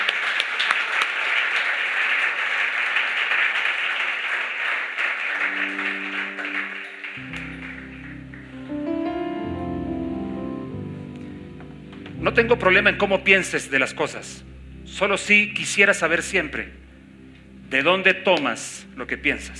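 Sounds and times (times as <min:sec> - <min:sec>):
audience applause: 0:00.0 - 0:09.0
organ or keyboard music: 0:05.3 - 0:19.5
speech: 0:12.4 - 0:16.8, 0:17.7 - 0:19.5.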